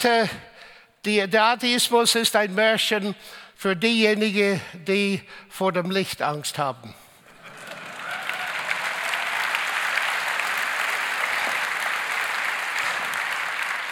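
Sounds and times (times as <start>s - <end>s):
speech: 0.0s - 7.0s
audience applause: 7.3s - 13.8s.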